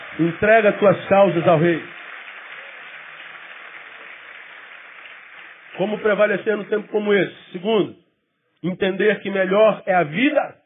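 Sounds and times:
audience applauding: 0:00.0 - 0:07.2
speech: 0:00.2 - 0:02.0, 0:05.8 - 0:08.0, 0:08.6 - 0:10.6.

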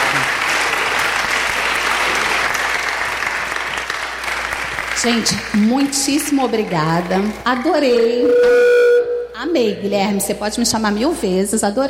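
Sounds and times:
crowd applause: 0:00.0 - 0:08.8
speech: 0:05.0 - 0:08.8, 0:09.4 - 0:11.8.

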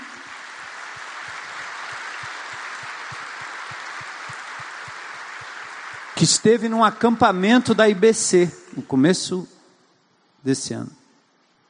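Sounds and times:
audience applauding: 0:00.0 - 0:08.1
speech: 0:06.2 - 0:09.6, 0:10.4 - 0:11.0.

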